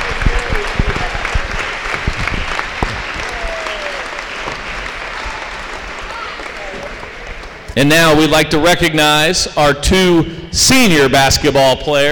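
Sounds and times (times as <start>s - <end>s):
audience applause: 0.0s - 7.7s
speech: 7.8s - 12.1s.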